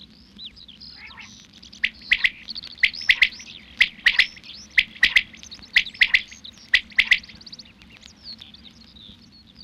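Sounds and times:
common quail singing at dusk: 0:00.9 - 0:07.8.

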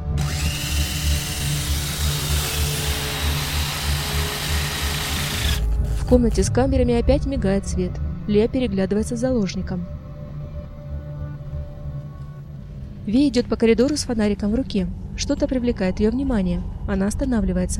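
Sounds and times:
drilling apparatus boring into vault door: 0:00.2 - 0:05.7
speech: 0:06.1 - 0:10.0, 0:13.1 - 0:17.7.

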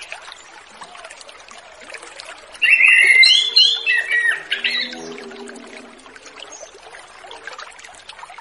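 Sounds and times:
orange-headed thrush song: 0:02.6 - 0:07.1.

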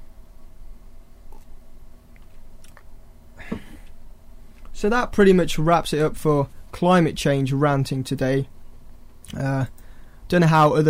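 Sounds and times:
person sipping water: 0:01.3 - 0:01.5
speech: 0:04.8 - 0:08.6, 0:09.3 - 0:10.8.

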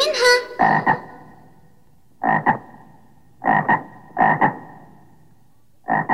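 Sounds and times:
frog croaking: 0:00.0 - 0:01.6, 0:02.2 - 0:05.2, 0:05.8 - 0:06.1.

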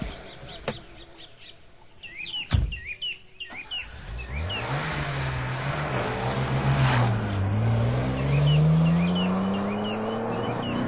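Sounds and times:
birds chirping: 0:00.0 - 0:05.5, 0:06.3 - 0:10.8
sharp thump: 0:02.5 - 0:02.9
luxury car engine revving and accelerating on a highway: 0:03.8 - 0:10.8.

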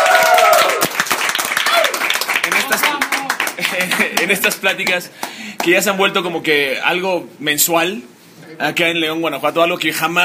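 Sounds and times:
audience applause: 0:00.0 - 0:05.4
speech: 0:03.8 - 0:10.2.

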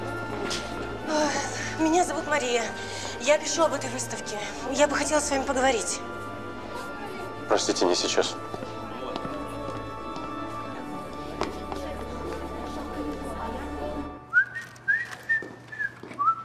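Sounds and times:
busy noise: 0:00.0 - 0:16.4
speech: 0:01.8 - 0:06.2, 0:07.5 - 0:08.7
person whistling a tune: 0:14.3 - 0:16.4.

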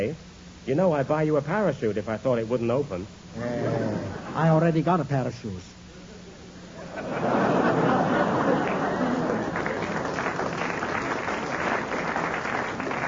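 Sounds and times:
speech: 0:00.0 - 0:03.8, 0:04.4 - 0:05.8
laughter: 0:03.4 - 0:04.6, 0:06.7 - 0:12.9
audience clapping: 0:08.2 - 0:13.0.

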